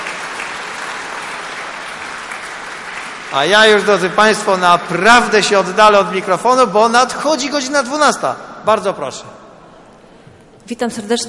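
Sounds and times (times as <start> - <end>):
crowd applause: 0.0 - 5.5
speech: 3.3 - 9.4, 10.7 - 11.2.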